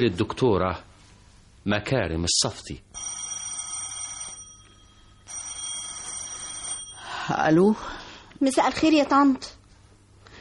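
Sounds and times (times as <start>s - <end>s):
speech: 0.0s - 0.9s, 1.6s - 3.2s, 7.3s - 9.6s
telephone ringing late at night in a home: 3.0s - 7.8s.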